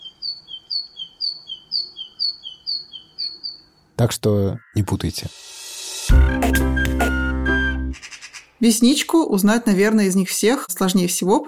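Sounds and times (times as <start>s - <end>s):
great tit singing: 0.0s - 8.6s
speech: 4.0s - 5.4s, 8.6s - 11.4s.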